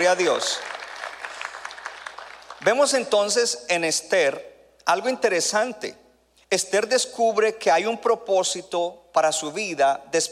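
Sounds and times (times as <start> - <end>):
speech: 0.0 - 0.7, 2.6 - 10.3
audience applause: 0.1 - 2.6.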